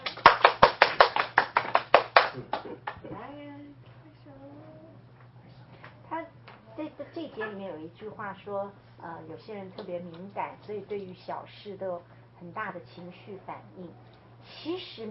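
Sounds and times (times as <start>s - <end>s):
audience clapping hands: 0.0s - 3.1s
speech: 2.4s - 4.4s, 6.1s - 15.0s.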